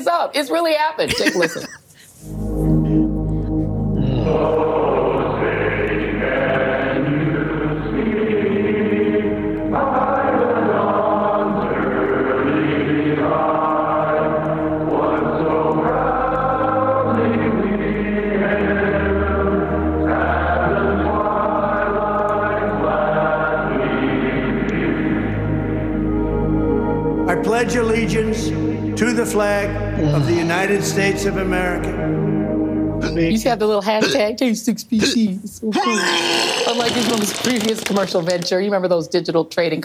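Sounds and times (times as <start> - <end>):
speech: 0.0 - 2.4, 27.7 - 32.2, 33.0 - 39.8
laughter: 1.0 - 2.8, 36.7 - 38.5
choir singing national anthem over jailhouse phone: 2.2 - 34.3.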